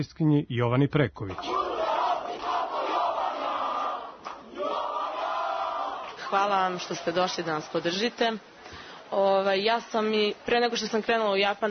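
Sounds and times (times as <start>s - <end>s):
speech: 0.0s - 1.7s, 6.3s - 11.6s
crowd ovation for returning Serbian Olympic champions at Nikola Tesla airport: 1.4s - 8.5s.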